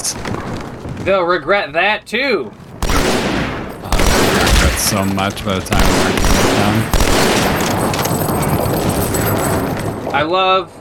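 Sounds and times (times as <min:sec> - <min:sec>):
speech: 0:01.0 - 0:02.6, 0:04.8 - 0:07.5, 0:10.1 - 0:10.7
video game gunfire: 0:02.8 - 0:09.9.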